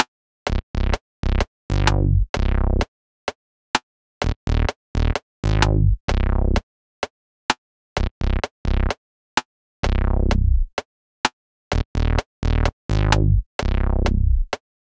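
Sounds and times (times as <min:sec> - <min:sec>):
bass: 0:00.5 - 0:02.9, 0:04.2 - 0:06.6, 0:08.0 - 0:09.0, 0:09.8 - 0:10.8, 0:11.7 - 0:14.6.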